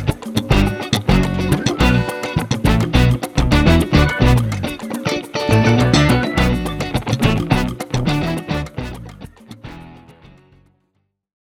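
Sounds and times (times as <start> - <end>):
music without drums: 0.0 - 10.6.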